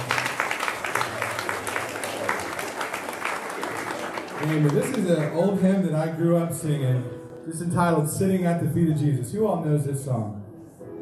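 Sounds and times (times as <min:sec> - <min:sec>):
church service audience applause: 0:00.0 - 0:06.2
speech: 0:04.4 - 0:10.4.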